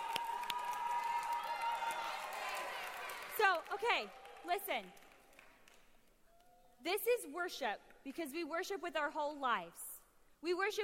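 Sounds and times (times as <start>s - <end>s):
audience cheering: 0.0s - 3.3s
audience clapping: 0.0s - 6.5s
speech: 3.5s - 5.0s, 6.8s - 10.8s.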